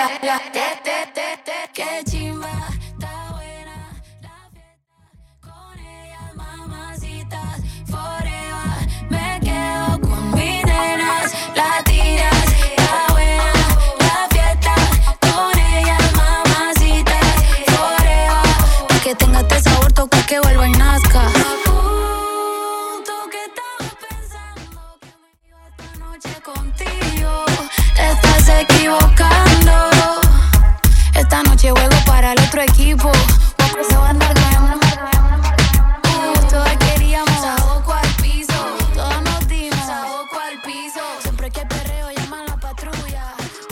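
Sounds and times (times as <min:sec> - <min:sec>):
clean extended breakbeat intro: 0:07.6 - 0:21.9, 0:23.8 - 0:25.0, 0:25.8 - 0:40.0, 0:41.3 - 0:43.7.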